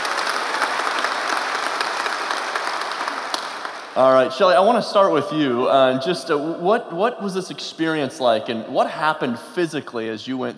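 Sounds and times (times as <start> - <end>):
audience applause in a church: 0.0 - 4.3
speech: 4.0 - 10.5.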